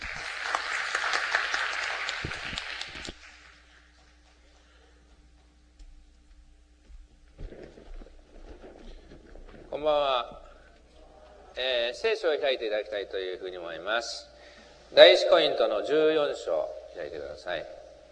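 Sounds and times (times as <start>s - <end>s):
audience applause: 0.0s - 4.9s
speech: 12.0s - 14.3s, 14.9s - 17.8s.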